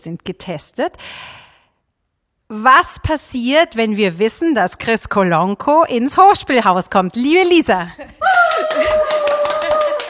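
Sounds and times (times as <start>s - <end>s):
speech: 0.0s - 1.5s, 2.5s - 9.3s
laughter: 8.0s - 10.0s
few people clapping: 8.2s - 10.0s.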